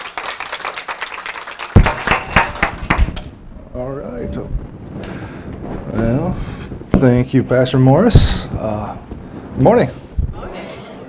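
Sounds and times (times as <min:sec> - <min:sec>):
church congregation applauding a young speaker: 0:00.0 - 0:03.3
speech: 0:03.8 - 0:04.6, 0:06.0 - 0:10.0.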